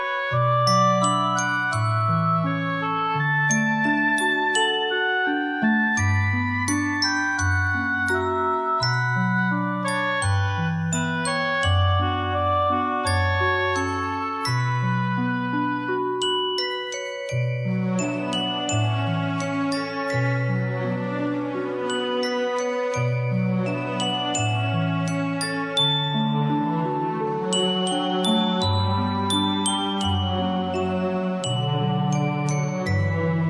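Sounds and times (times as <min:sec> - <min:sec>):
soft background music: 0:00.0 - 0:33.4.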